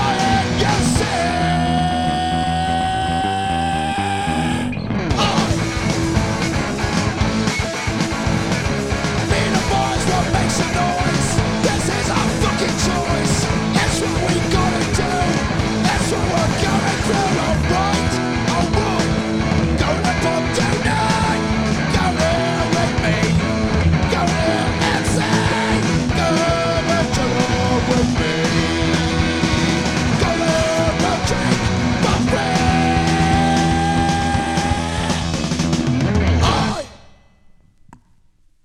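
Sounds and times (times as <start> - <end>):
punk rock music: 0.0 - 37.4.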